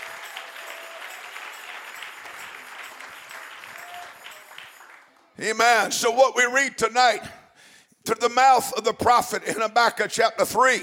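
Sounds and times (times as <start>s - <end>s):
audience clapping: 0.0s - 5.4s
speech: 5.4s - 7.4s, 8.0s - 10.8s.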